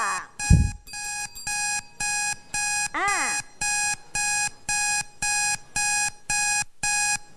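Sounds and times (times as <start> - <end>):
time-up electronic alarm signal pulsing: 0.4 - 7.2
low thump: 0.5 - 0.8.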